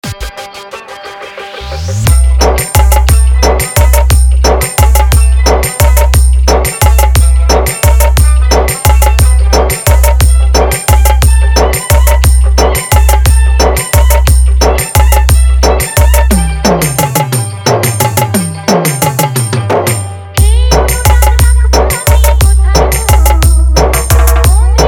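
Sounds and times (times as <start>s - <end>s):
Bengali romantic love song mix: 0.0s - 24.8s.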